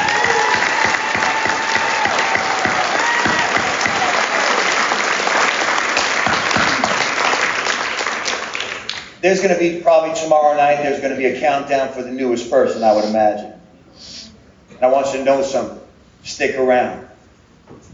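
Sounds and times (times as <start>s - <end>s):
audience applause: 0.0s - 9.2s
speech: 9.2s - 14.1s, 14.8s - 15.8s, 16.4s - 17.0s.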